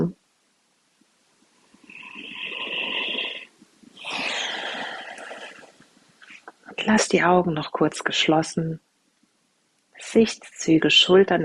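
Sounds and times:
slow deliberate breathing in and out during a mindfulness exercise: 1.6s - 6.5s
speech: 6.8s - 8.9s, 10.0s - 11.4s.

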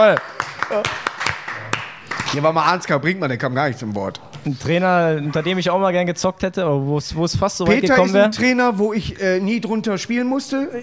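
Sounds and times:
speech: 0.0s - 1.0s, 2.3s - 10.8s
applause: 0.0s - 2.6s.

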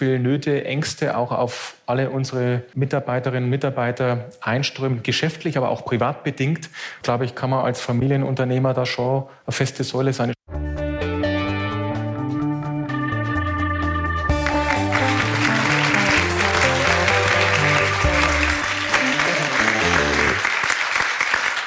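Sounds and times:
speech: 0.0s - 10.4s
music: 10.5s - 20.5s
live audience applause: 14.3s - 21.6s.

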